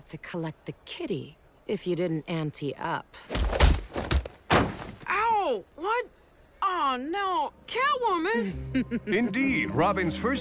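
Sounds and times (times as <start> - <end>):
speech: 0.1 - 3.8, 5.5 - 10.3
sharp elbow strike to the chin: 3.3 - 5.1.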